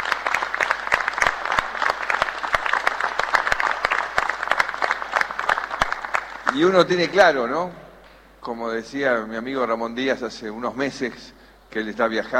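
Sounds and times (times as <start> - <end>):
audience applause: 0.0 - 7.0
speech: 6.5 - 7.8, 8.4 - 12.3.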